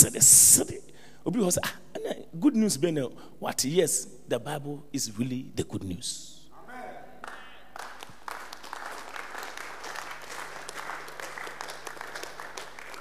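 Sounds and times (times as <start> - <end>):
speech: 0.0 - 6.4
group of women clapping: 7.2 - 12.9.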